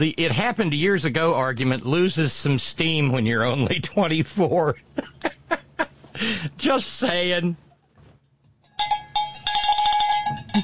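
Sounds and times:
speech: 0:00.0 - 0:05.4, 0:06.2 - 0:07.6
cowbell being struck: 0:08.7 - 0:10.6.

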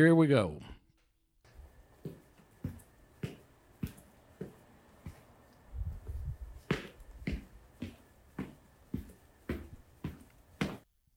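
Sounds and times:
speech: 0:00.0 - 0:00.8
footsteps walking around a room: 0:00.8 - 0:10.9.

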